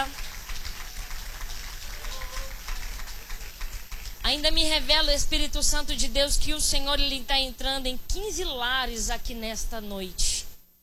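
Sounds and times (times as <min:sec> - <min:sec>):
audience clapping hands: 0:00.0 - 0:04.4
speech: 0:04.3 - 0:10.4.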